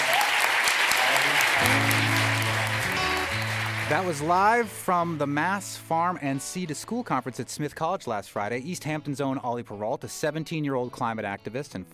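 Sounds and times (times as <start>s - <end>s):
audience applause: 0.0s - 4.8s
speech: 3.9s - 11.9s.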